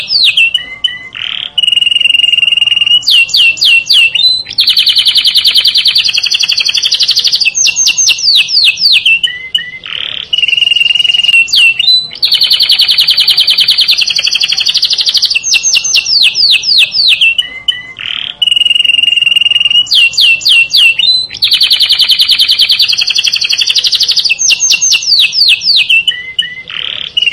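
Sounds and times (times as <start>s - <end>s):
canary song: 0.0s - 27.3s.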